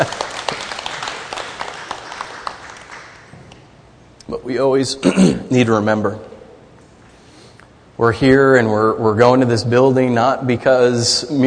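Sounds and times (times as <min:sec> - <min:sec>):
speech: 0:00.0 - 0:00.2, 0:04.3 - 0:06.3, 0:08.0 - 0:11.4
audience clapping: 0:00.0 - 0:03.6.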